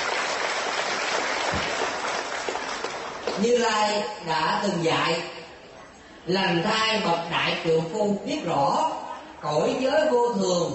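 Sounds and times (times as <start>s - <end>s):
audience applause: 0.0s - 3.4s
speech: 3.4s - 5.4s, 6.3s - 10.7s.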